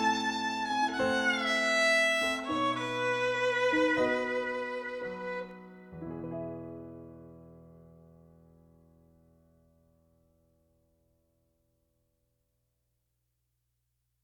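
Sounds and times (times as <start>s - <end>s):
instrumental music: 0.0s - 8.1s.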